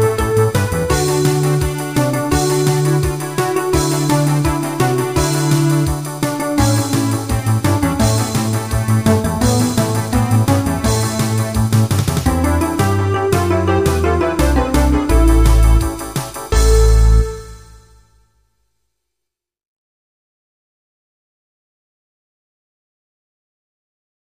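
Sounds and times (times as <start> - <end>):
instrumental music: 0.0 - 18.2.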